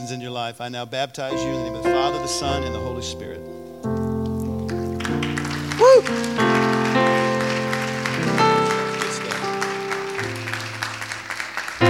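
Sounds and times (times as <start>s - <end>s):
speech: 0.0s - 4.0s, 5.9s - 7.2s
sustained keyboard or organ chords: 0.0s - 11.8s
crowd clapping: 4.4s - 11.8s.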